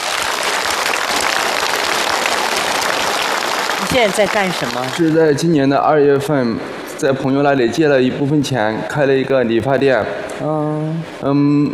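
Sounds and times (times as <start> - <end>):
audience applause: 0.0 - 5.6
speech: 3.9 - 11.7.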